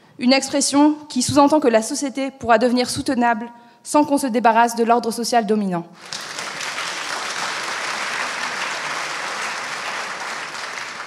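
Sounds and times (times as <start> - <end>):
speech: 0.2 - 6.3
sustained audience applause: 6.0 - 11.0.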